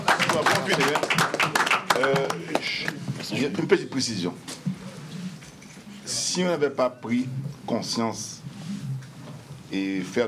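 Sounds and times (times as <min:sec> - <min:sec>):
audience applause: 0:00.0 - 0:03.0
speech: 0:00.3 - 0:04.7, 0:06.4 - 0:08.4, 0:09.7 - 0:10.2.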